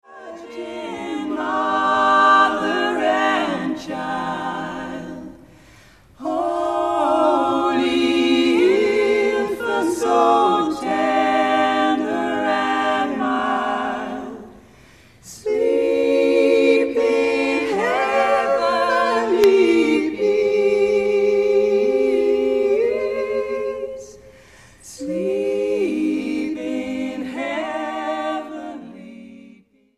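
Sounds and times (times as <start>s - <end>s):
SSAA choir singing a carol: 0.0s - 29.9s.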